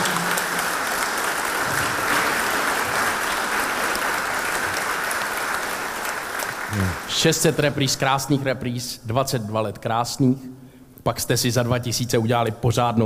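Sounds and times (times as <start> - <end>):
audience applause: 0.0 - 7.8
speech: 6.8 - 13.0.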